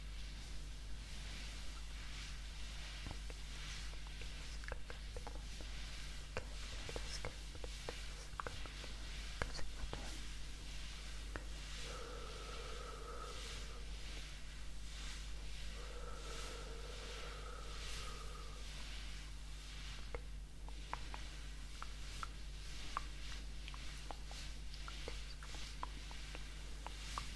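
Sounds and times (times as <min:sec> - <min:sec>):
low hum: 0:00.0 - 0:27.3
face massage soft crackles and taps: 0:03.0 - 0:11.6, 0:20.0 - 0:27.3.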